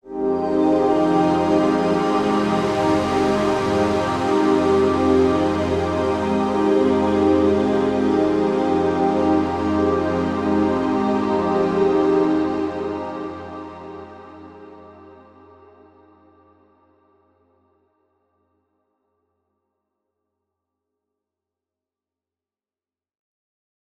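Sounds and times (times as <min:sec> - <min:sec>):
synth pad: 0:00.1 - 0:15.4.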